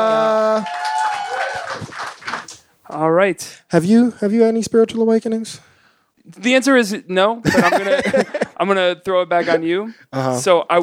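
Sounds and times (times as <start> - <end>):
audience applause: 0.0 - 2.6
speech: 3.2 - 5.7, 6.3 - 10.8
laughter: 7.4 - 9.8.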